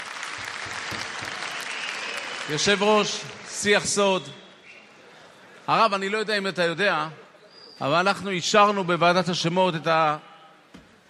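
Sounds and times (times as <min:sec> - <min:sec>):
crowd applause at a public ceremony: 0:00.0 - 0:03.8
speech: 0:02.5 - 0:04.4, 0:05.7 - 0:07.2, 0:07.8 - 0:10.3.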